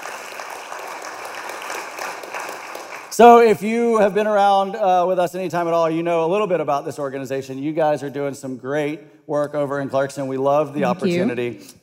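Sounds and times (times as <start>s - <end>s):
audience clapping: 0.0s - 3.5s
speech: 3.2s - 11.8s.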